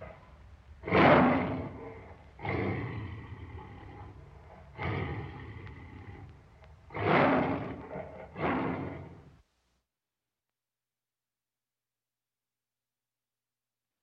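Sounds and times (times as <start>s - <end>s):
tiger roaring: 0.0s - 9.3s.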